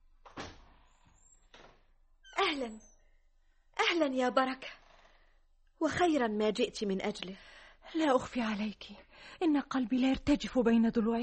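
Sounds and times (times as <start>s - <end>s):
door creaking open in an Egyptian radio drama: 0.2s - 3.0s, 4.7s - 5.2s
speech: 2.5s - 2.9s, 4.0s - 4.8s, 5.8s - 11.2s.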